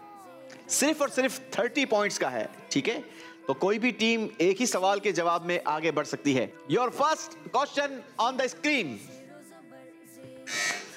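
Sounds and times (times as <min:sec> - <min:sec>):
speech: 0:00.7 - 0:09.1
quiz buzzer: 0:10.5 - 0:10.9.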